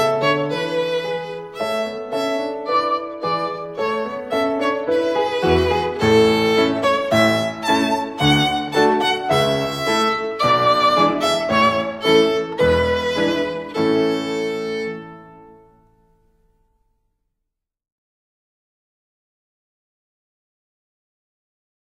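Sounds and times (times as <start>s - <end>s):
strings performing a song: 0.0s - 15.8s.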